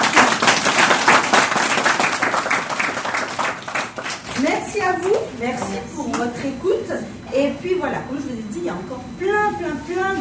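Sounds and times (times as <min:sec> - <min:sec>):
audience applause: 0:00.0 - 0:04.3
speech: 0:04.9 - 0:10.2.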